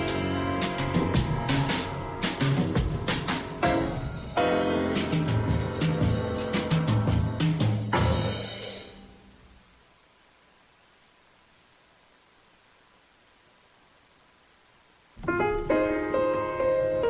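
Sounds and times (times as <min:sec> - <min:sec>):
jazz music: 0:00.0 - 0:09.3, 0:15.2 - 0:17.0.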